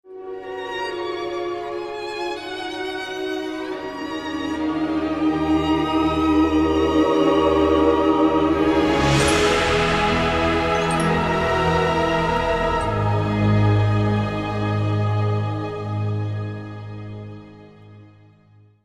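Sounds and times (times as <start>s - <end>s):
lyrical background music: 0.0s - 18.6s.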